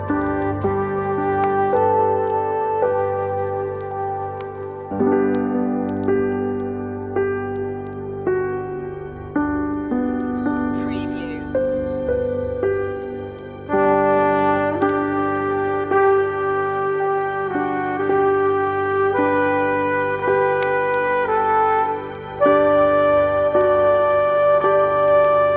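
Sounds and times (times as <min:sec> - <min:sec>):
relaxing Christmas on-hold music: 0:00.0 - 0:25.5.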